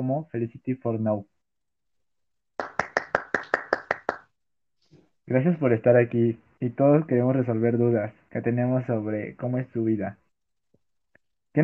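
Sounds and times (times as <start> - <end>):
speech: 0.0 - 1.4, 5.3 - 10.2
applause: 2.6 - 4.3.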